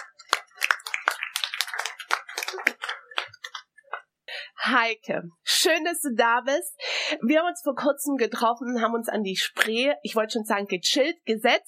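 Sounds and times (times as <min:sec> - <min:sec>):
audience toast applause clapping game: 0:00.0 - 0:03.7
speech: 0:04.7 - 0:11.6.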